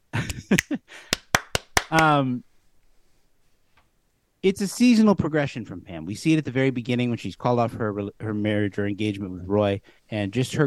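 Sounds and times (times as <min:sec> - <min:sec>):
hand claps: 0:00.2 - 0:02.1
speech: 0:00.5 - 0:00.7, 0:01.9 - 0:02.5, 0:04.4 - 0:10.6.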